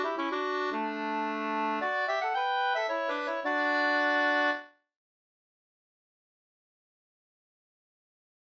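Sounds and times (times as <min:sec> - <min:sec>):
two-part polska folk dance tune: 0:00.0 - 0:04.7.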